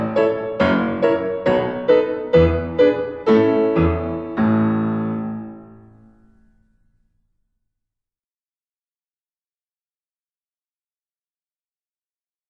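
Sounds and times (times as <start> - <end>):
violin melody in medium practice tempo: 0.0 - 5.7.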